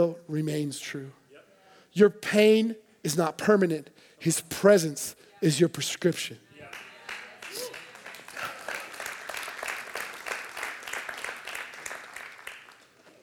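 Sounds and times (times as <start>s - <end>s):
speech: 0.0s - 1.2s, 2.0s - 6.8s
audience clapping: 6.6s - 13.2s.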